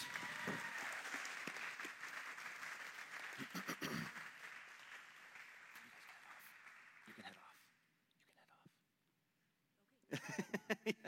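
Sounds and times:
applause for a class: 0.0 - 7.8
laughter: 10.1 - 11.0.

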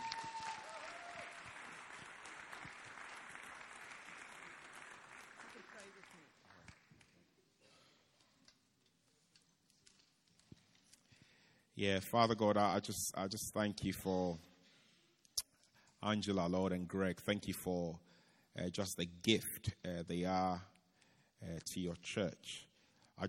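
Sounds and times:
crowd applause: 0.0 - 7.1
speech: 11.8 - 14.5, 16.0 - 20.7, 21.4 - 23.2.

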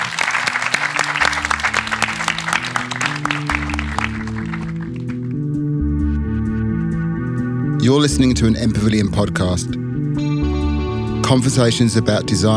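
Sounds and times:
audience clapping: 0.0 - 5.4
low sustained musical theme: 0.0 - 12.5
speech: 7.8 - 9.8, 11.3 - 12.5.

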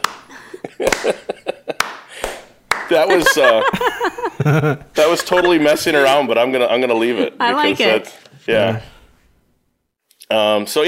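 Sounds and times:
slow hand claps: 0.0 - 3.4
laughter: 0.3 - 1.8, 2.9 - 6.3
speech: 0.6 - 1.3, 2.9 - 8.9, 10.3 - 10.8.

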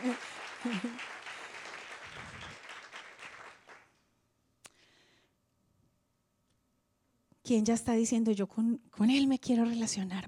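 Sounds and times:
audience applause: 0.0 - 3.9
speech: 0.1 - 1.1, 7.5 - 10.2.

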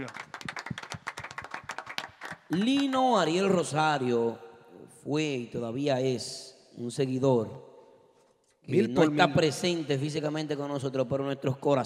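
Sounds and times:
speech: 0.0 - 0.3, 2.5 - 4.4, 5.0 - 7.7, 8.7 - 11.8
applause: 0.0 - 3.5.

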